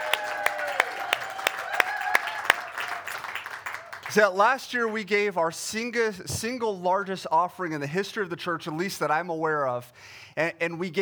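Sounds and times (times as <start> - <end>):
audience clapping and cheering: 0.0 - 5.0
speech: 4.1 - 11.0.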